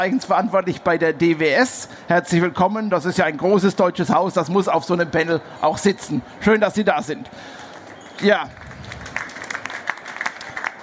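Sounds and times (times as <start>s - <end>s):
speech: 0.0s - 7.6s, 8.2s - 8.6s
audience applause: 8.2s - 10.8s.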